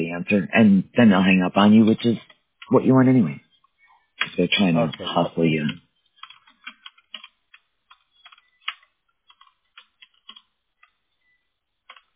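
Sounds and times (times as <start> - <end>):
speech: 0.0 - 3.4, 4.2 - 5.8
typing on a computer keyboard: 4.2 - 11.0, 11.9 - 12.1.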